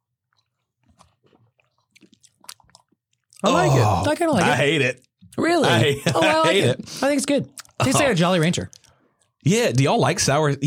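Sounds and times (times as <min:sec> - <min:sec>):
sipping and swallowing sour green apple zero-sugar soda: 0:00.3 - 0:04.3, 0:06.5 - 0:07.9, 0:08.6 - 0:09.4
speech: 0:03.4 - 0:08.8, 0:09.4 - 0:10.6
laughter: 0:05.6 - 0:06.9.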